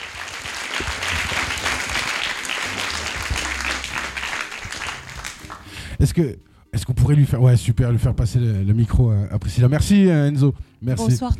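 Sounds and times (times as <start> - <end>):
audience applause: 0.0 - 5.8
speech: 6.0 - 11.3.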